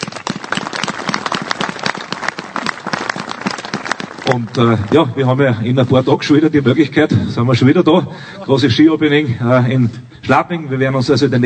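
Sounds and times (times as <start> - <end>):
audience applause: 0.0 - 5.5
speech: 4.3 - 11.4.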